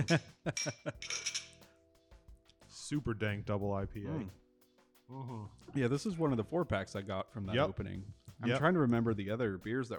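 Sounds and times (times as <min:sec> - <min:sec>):
speech: 0:00.0 - 0:01.4, 0:02.9 - 0:04.4, 0:05.1 - 0:09.9
glasses clinking in a toast: 0:00.0 - 0:01.7.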